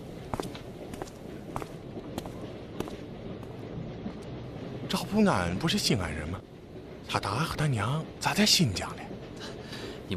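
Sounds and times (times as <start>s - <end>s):
footsteps walking along a train toward the dining car: 0.0s - 4.3s
steady train noise: 0.0s - 10.1s
speech: 4.9s - 6.5s, 7.1s - 10.1s.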